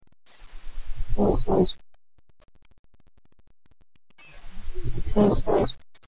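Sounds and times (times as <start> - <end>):
Townsend's Warbler: 0.4 - 1.8, 4.3 - 5.8.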